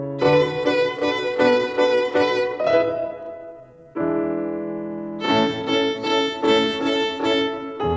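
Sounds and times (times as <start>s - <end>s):
rhythm played with three fingers: 0.2s - 3.6s, 5.2s - 7.9s.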